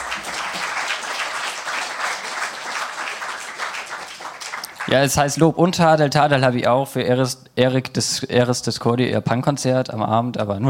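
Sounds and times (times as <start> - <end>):
audience applause: 0.0 - 5.4
speech: 4.9 - 10.6.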